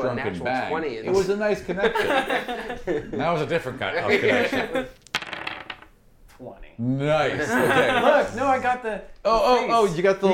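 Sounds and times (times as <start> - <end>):
speech: 0.0 - 5.0, 6.4 - 10.3
laughter: 1.8 - 5.0, 7.3 - 8.6
hand painted dice rolling on a hard surface: 4.9 - 6.0.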